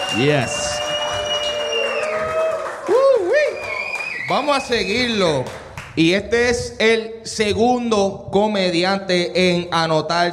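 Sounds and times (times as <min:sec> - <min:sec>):
audience applause: 0:00.0 - 0:06.0
speech: 0:00.1 - 0:00.7, 0:04.3 - 0:10.3.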